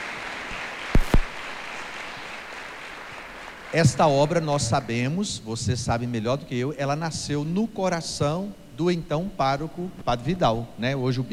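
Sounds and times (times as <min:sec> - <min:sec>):
sharp loud hand claps: 0:00.0 - 0:04.0
faint hiss: 0:00.0 - 0:11.3
speech: 0:03.7 - 0:11.3.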